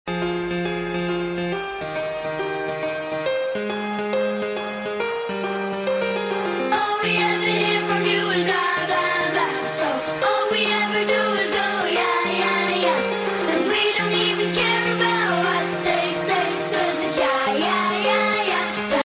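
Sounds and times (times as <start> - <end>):
piano: 0.1 - 19.0.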